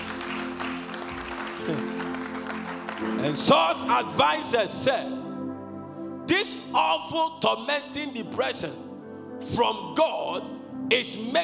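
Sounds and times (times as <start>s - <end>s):
audience clapping: 0.0s - 3.9s
speech: 1.7s - 2.1s, 3.0s - 5.2s, 6.3s - 11.4s.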